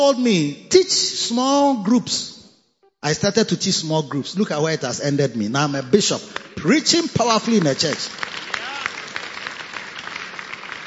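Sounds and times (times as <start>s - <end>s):
speech: 0.0s - 2.3s, 3.0s - 8.5s
audience clapping: 6.1s - 10.8s.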